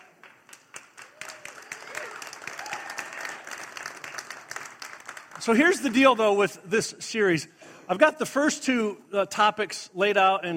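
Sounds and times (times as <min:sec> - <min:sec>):
audience applause: 0:00.0 - 0:06.2
speech: 0:05.4 - 0:10.5.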